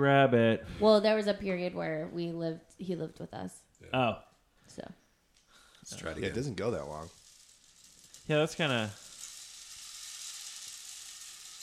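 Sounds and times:
speech: 0.0s - 5.0s, 5.8s - 7.2s, 8.3s - 9.0s
rain stick tilted with beads rattling: 5.8s - 11.6s.

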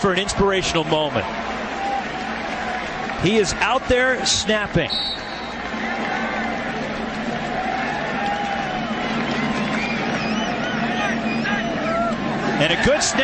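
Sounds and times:
speech: 0.0s - 1.8s, 3.2s - 5.2s, 12.6s - 13.2s
large stadium crowd cheering: 0.0s - 13.2s
high whistles from the crowd: 4.8s - 5.6s, 8.6s - 12.0s.

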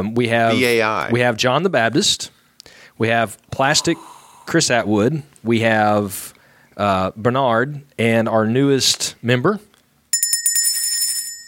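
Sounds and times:
speech: 0.0s - 9.7s
small bell ringing: 10.1s - 11.4s.

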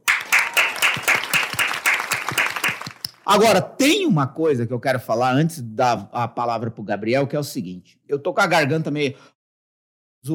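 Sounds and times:
applause: 0.0s - 3.2s
speech: 3.3s - 9.3s.

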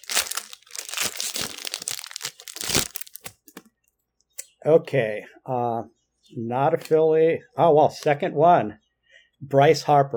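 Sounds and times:
baseball card pack wrapper ripped open: 0.0s - 3.6s
speech: 4.6s - 8.8s, 9.4s - 10.1s.

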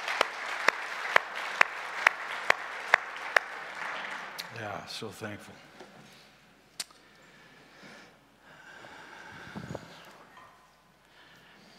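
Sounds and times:
audience applauding the worship team: 0.0s - 5.0s
speech: 4.6s - 5.7s.

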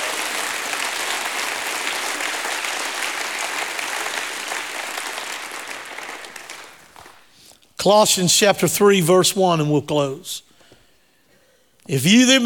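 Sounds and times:
audience hand clapping: 0.0s - 7.3s
speech: 7.8s - 10.5s, 11.9s - 12.4s.

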